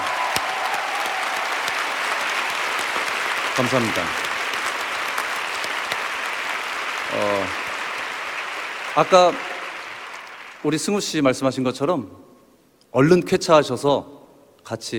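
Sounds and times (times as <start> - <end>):
audience applause: 0.0 - 10.8
speech: 3.6 - 4.3, 9.0 - 9.5, 10.6 - 12.2, 12.9 - 14.9.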